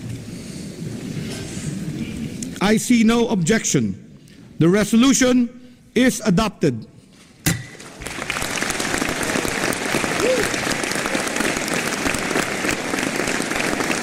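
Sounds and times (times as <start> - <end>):
speech: 2.6 - 4.0, 4.6 - 6.9
assembly delegates' ovation: 7.7 - 14.0.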